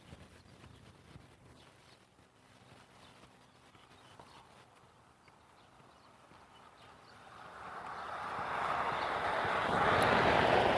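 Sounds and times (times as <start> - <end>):
distant lawn mower: 2.1 - 10.7.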